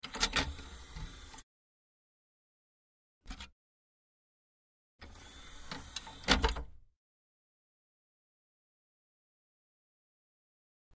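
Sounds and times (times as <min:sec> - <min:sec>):
compact disc player: 0:00.0 - 0:01.4, 0:05.0 - 0:06.7.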